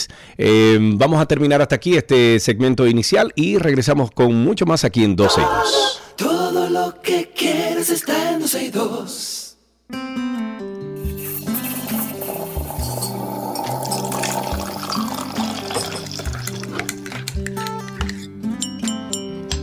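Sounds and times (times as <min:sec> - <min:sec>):
speech: 0:00.0 - 0:10.8
teaspoon clinking in coffee cup: 0:11.2 - 0:19.6.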